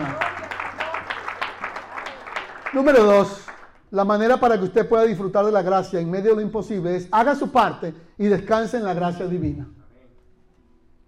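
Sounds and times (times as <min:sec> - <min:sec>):
audience applause: 0:00.0 - 0:03.7
speech: 0:02.7 - 0:09.8.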